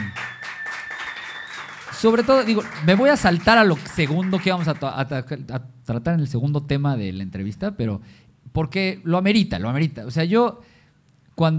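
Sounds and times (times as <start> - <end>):
audience applause: 0.0 - 4.8
speech: 2.0 - 10.7, 11.4 - 11.5.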